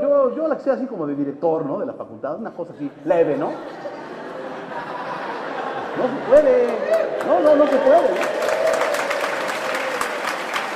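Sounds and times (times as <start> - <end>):
speech: 0.4 - 4.0, 6.0 - 8.4
laughter: 3.1 - 8.0
audience applause: 6.4 - 10.7.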